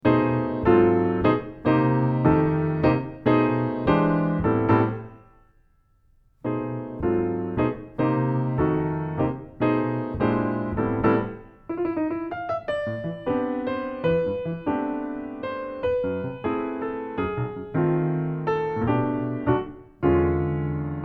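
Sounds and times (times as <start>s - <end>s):
romantic and plaintive solo piano bossa arrangement: 0.0s - 5.4s, 6.4s - 21.0s.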